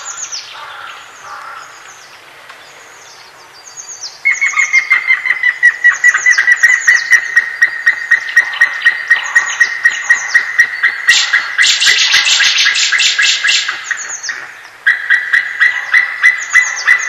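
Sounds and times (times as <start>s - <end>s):
White-tailed eagle yelping call: 4.3s - 17.0s.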